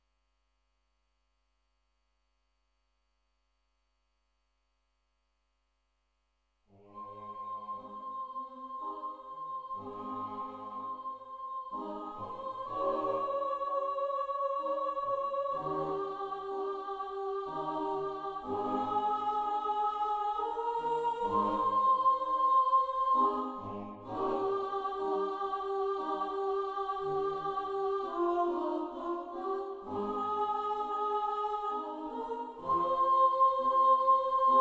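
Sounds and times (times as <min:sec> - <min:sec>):
choir singing: 0:06.9 - 0:34.5.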